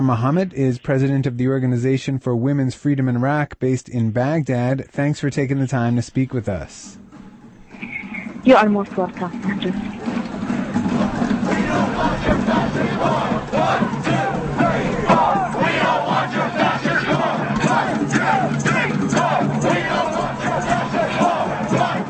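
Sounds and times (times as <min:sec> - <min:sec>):
speech: 0:00.0 - 0:07.0, 0:08.5 - 0:10.2
huge anti-war protest crowd chanting and shouting in Jakarta, Indonesia: 0:08.2 - 0:22.0.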